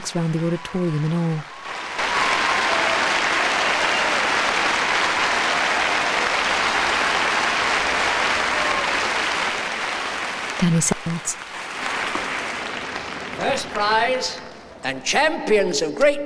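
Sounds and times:
audience applauding and cheering: 0:00.0 - 0:14.4
speech: 0:00.1 - 0:01.6, 0:10.6 - 0:11.5, 0:13.4 - 0:16.2.

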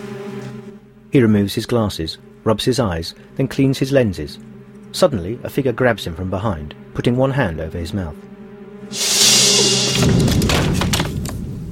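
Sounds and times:
steady low hum: 0:00.0 - 0:11.7
speech: 0:01.1 - 0:08.3, 0:08.9 - 0:09.2
chair crashing to the ground: 0:10.0 - 0:11.4.

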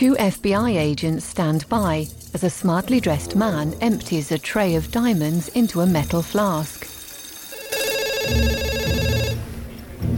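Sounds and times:
speech: 0:00.0 - 0:06.9, 0:08.3 - 0:08.7
telephone ringing over a speaker: 0:04.1 - 0:09.5.

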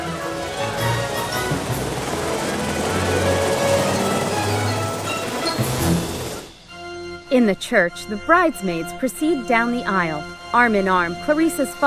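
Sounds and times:
helicopter descending and landing: 0:00.0 - 0:06.8
speech: 0:07.4 - 0:11.8.

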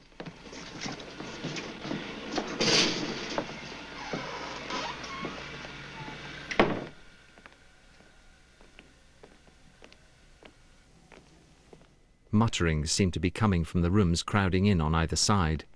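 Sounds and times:
metal grille of a small lift pulled open: 0:00.5 - 0:06.7
speech: 0:12.4 - 0:15.7.

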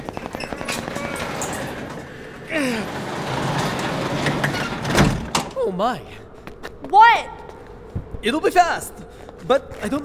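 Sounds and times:
garage door being lifted open: 0:00.7 - 0:05.5
speech: 0:05.8 - 0:06.2, 0:06.8 - 0:07.4, 0:08.2 - 0:10.0.

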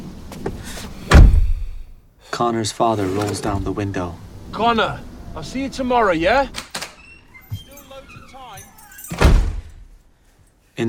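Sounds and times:
car door closing with heavy thump: 0:01.1 - 0:01.6
speech: 0:02.4 - 0:06.7.

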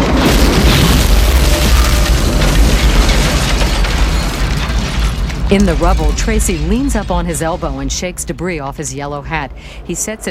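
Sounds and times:
basement explosion: 0:00.0 - 0:09.0
speech: 0:05.5 - 0:10.2.

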